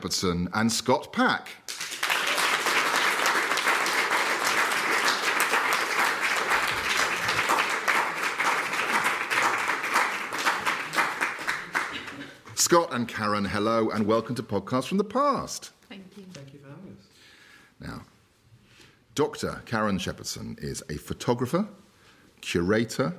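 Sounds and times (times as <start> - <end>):
speech: 0.0 - 1.6, 12.7 - 16.6, 19.2 - 21.8, 22.4 - 23.1
live studio audience applauding as guests are introduced: 1.7 - 12.5.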